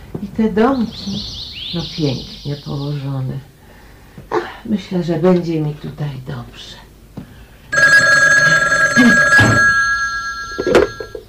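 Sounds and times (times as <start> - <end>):
speech: 0.2 - 3.5, 4.2 - 6.8, 10.6 - 10.9
telephone bell ringing: 7.7 - 11.2.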